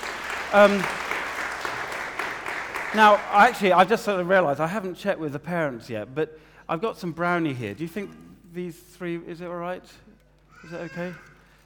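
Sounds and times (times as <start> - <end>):
audience round of applause: 0.0 - 3.9
speech: 0.5 - 1.0, 2.9 - 11.3.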